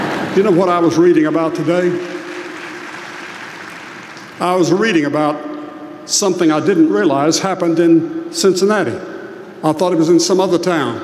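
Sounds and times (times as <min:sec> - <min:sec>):
audience applause: 0:00.0 - 0:04.6
speech: 0:00.4 - 0:02.2, 0:04.4 - 0:05.5, 0:06.1 - 0:11.0.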